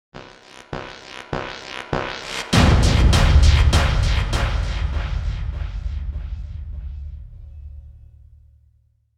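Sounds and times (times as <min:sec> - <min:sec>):
object slamming: 0:02.6 - 0:08.6.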